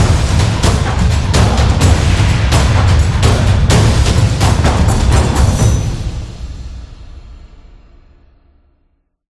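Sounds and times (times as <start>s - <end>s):
Taiko drums from Japan: 0.0s - 7.3s.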